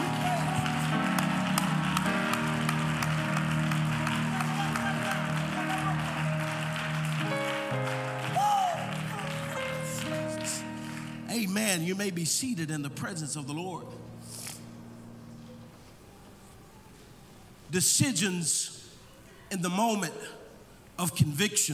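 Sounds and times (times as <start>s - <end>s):
audience clapping hands: 0.0s - 11.8s
sustained music-like tones: 0.0s - 16.1s
speech: 11.6s - 14.1s, 17.7s - 18.8s, 19.5s - 20.4s, 21.0s - 21.7s.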